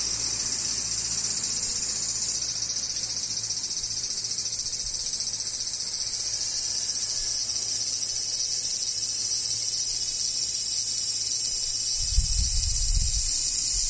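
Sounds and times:
cicadas buzzing: 0:00.0 - 0:13.8.

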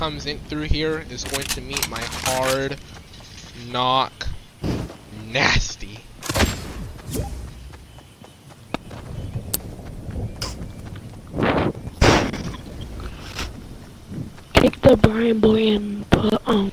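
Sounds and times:
speech: 0:00.0 - 0:03.0, 0:03.6 - 0:04.7, 0:05.3 - 0:06.0, 0:14.9 - 0:16.7
low rumble of game noise: 0:00.0 - 0:16.7
video game gunfire: 0:06.2 - 0:07.4.

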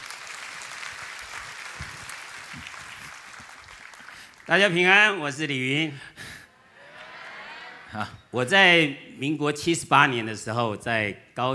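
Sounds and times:
audience applause: 0:00.0 - 0:04.5
speech: 0:04.5 - 0:06.2, 0:07.9 - 0:11.5.

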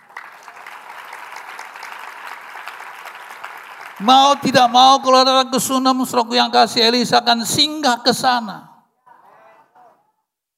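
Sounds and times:
applause: 0:00.0 - 0:05.5
speech: 0:04.0 - 0:08.7.

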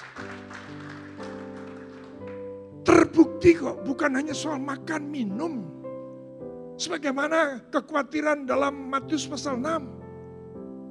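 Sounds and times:
audience clapping: 0:00.0 - 0:02.6
speech: 0:03.0 - 0:05.8, 0:06.8 - 0:10.0.

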